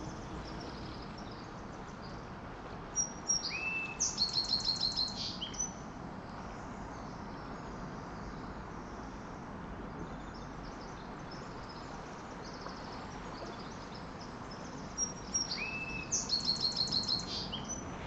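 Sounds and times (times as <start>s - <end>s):
sparrow singing near ocean shores: 0.0s - 2.3s, 2.9s - 9.0s, 9.9s - 17.9s.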